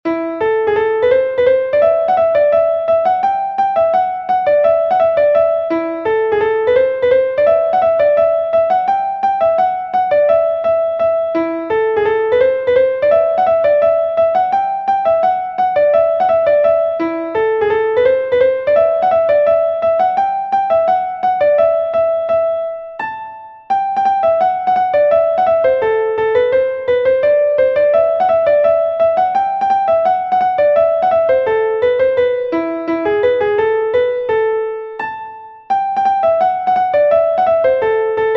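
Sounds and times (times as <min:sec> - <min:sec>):
computer-generated schottische from sheet music: 0:00.1 - 0:38.3.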